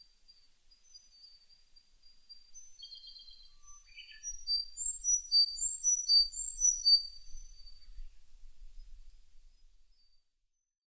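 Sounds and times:
Sakhalin leaf warbler singing: 0.8 - 8.2.

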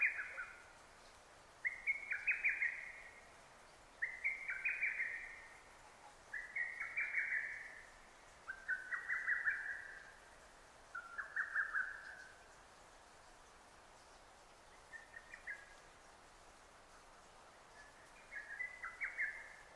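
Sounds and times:
lesser cuckoo song: 0.0 - 0.8, 1.6 - 3.2, 4.0 - 7.9, 8.5 - 10.2, 10.9 - 12.4, 17.8 - 19.7.

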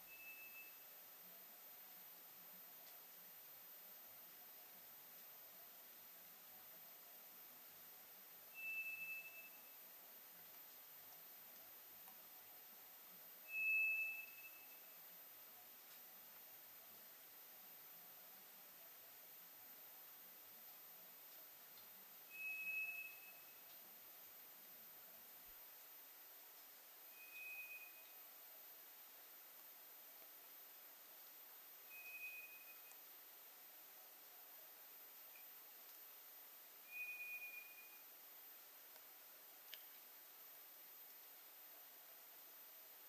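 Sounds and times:
White's thrush long whistle: 0.0 - 0.8, 8.5 - 9.8, 13.5 - 14.8, 22.3 - 23.5, 27.1 - 28.1, 31.9 - 32.9, 36.8 - 38.0
faint steady hiss: 0.0 - 43.0.

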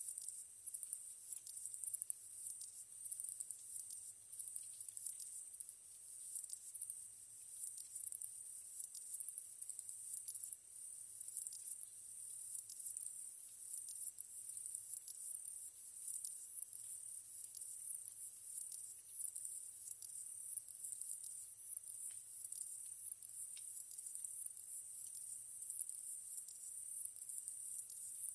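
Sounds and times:
katydid ticking song: 0.1 - 28.3.

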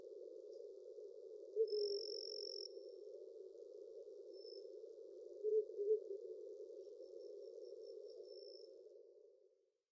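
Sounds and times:
owl: 1.6 - 2.7, 5.4 - 6.2.

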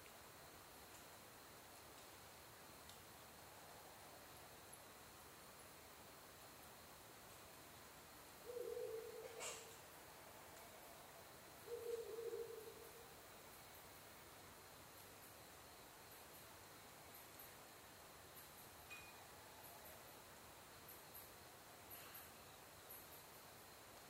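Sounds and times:
quiet hiss: 0.0 - 24.0
Ural Owl hooting: 8.4 - 9.8, 11.6 - 13.0.

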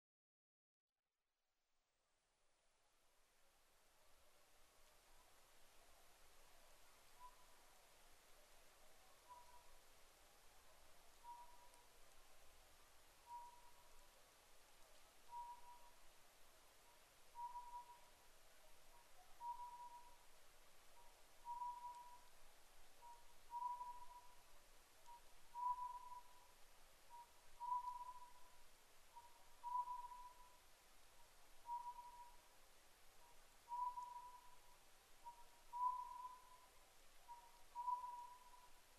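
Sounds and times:
faint hiss: 2.1 - 38.9
Oriental scops owl whistled calls at night: 7.2 - 7.5, 9.2 - 9.7, 11.2 - 11.9, 13.2 - 14.0, 15.3 - 16.0, 16.9 - 18.1, 18.9 - 20.2, 21.0 - 22.3, 23.0 - 30.6, 31.6 - 32.4, 33.2 - 38.8.

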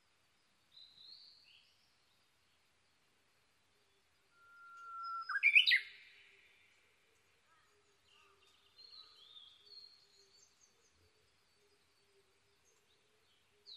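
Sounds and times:
Japanese bush warbler whistled song with flourish: 4.3 - 5.8.

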